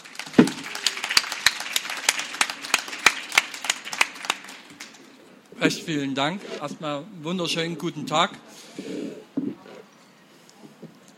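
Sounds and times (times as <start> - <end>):
audience applause: 0.0 - 5.3
speech: 5.6 - 9.3.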